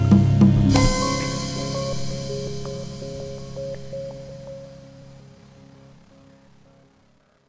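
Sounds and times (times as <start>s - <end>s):
login sound: 0.1s - 5.3s.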